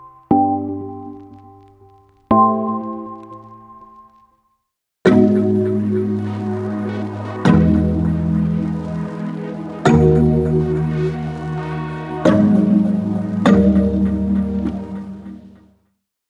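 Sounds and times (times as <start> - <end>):
dancehall afrobeats chord progression: 5.1 - 15.6.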